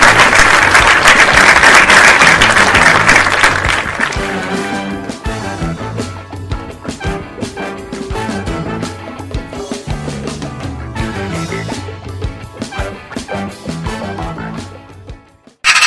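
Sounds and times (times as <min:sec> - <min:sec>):
collective applause: 0:00.0 - 0:05.1.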